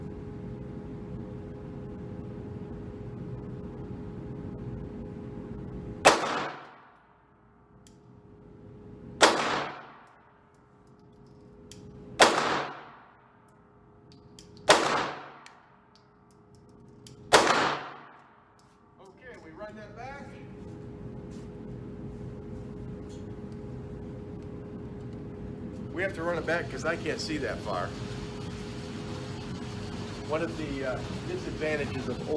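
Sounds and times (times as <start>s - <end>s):
low steady hum: 0.0s - 32.3s
Glock 17 pistol gunshots: 6.0s - 6.9s, 9.2s - 10.1s, 12.2s - 13.2s, 14.6s - 15.6s, 17.3s - 18.2s
speech: 26.0s - 28.1s, 30.3s - 32.3s.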